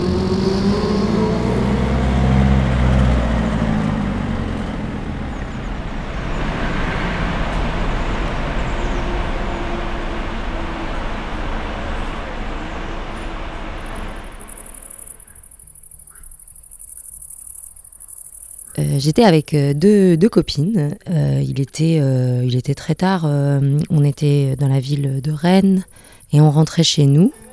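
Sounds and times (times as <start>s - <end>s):
scooters revving: 0.0s - 15.3s, 27.1s - 27.5s
powerful car engines roaring: 0.0s - 15.6s
speech: 19.0s - 27.5s.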